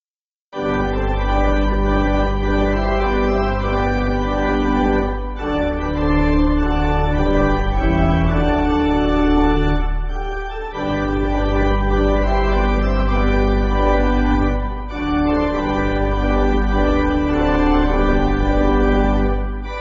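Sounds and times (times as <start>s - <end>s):
pipe organ: 0.6s - 19.8s.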